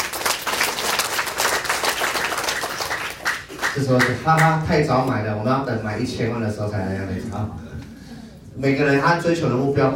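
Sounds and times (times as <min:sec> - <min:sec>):
audience applause: 0:00.0 - 0:04.1
speech: 0:03.8 - 0:07.7, 0:08.6 - 0:09.9.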